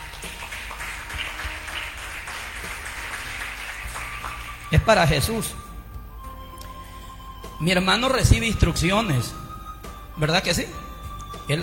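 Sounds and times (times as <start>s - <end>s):
audience applause: 0.0s - 5.4s
speech: 4.7s - 5.6s, 7.6s - 9.4s, 10.2s - 10.8s, 11.5s - 11.6s.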